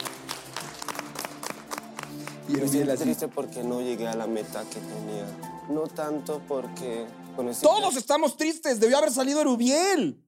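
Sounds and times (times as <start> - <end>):
small audience applause: 0.0 - 3.2
speech: 2.5 - 10.2.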